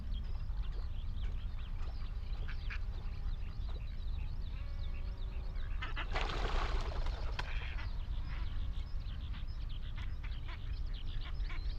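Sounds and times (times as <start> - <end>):
ducks and geese calling on Higham Marshes, Thames Estuary: 0.1 - 3.8, 4.5 - 11.7
rough splashing or flapping: 6.0 - 7.7.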